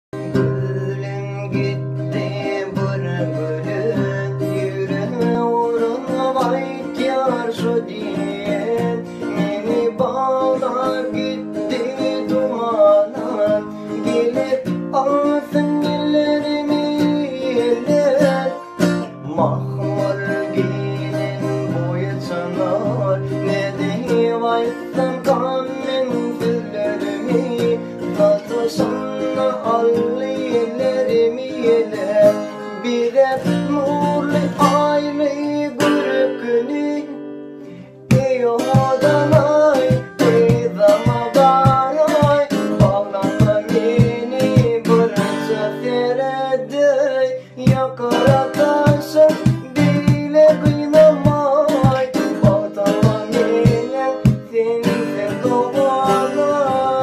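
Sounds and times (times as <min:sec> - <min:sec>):
Turkmen guitar playing: 0:00.2 - 0:57.0.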